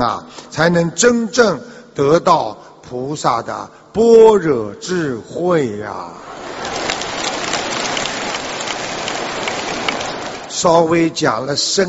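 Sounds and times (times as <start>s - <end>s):
speech: 0.0s - 6.4s, 10.6s - 11.8s
crowd applause: 6.2s - 10.6s.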